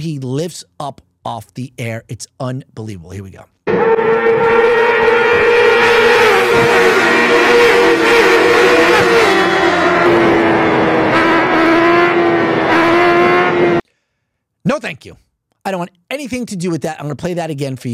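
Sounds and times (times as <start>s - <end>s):
speech: 0.0s - 4.8s, 6.5s - 10.4s, 14.6s - 17.9s
racing motorcycle engine screaming at high revs: 3.7s - 13.8s.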